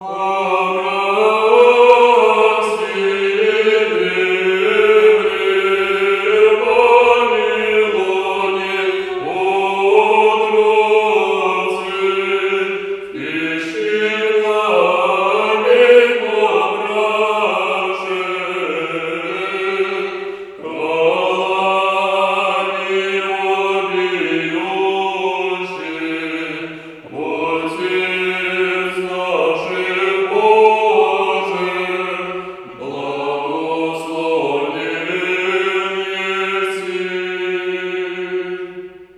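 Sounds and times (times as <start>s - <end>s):
liturgical chant: 0.0s - 39.1s.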